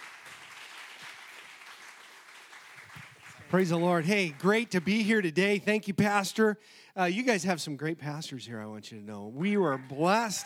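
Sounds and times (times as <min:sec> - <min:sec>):
church congregation applause welcoming a guest speaker: 0:00.0 - 0:05.1, 0:09.5 - 0:10.4
speech: 0:03.5 - 0:10.4.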